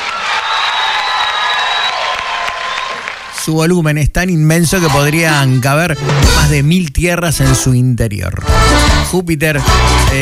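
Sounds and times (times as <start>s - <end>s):
audience applause for a band: 0.0s - 3.6s
speech: 3.4s - 10.2s.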